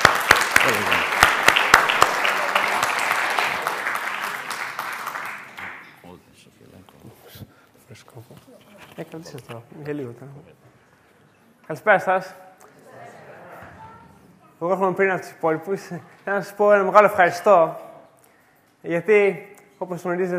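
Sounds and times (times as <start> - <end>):
audience applause: 0.0 - 5.9
speech: 9.1 - 10.6, 11.7 - 12.4, 14.6 - 17.8, 18.8 - 20.3.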